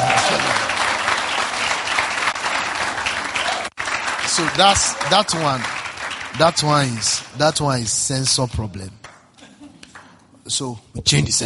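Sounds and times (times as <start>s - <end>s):
audience clapping: 0.0s - 7.9s
speech: 4.4s - 5.8s, 6.4s - 9.0s, 10.5s - 11.4s.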